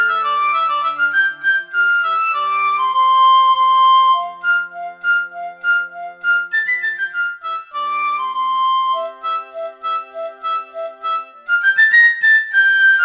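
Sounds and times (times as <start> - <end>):
piccolo: 0.0 - 13.0.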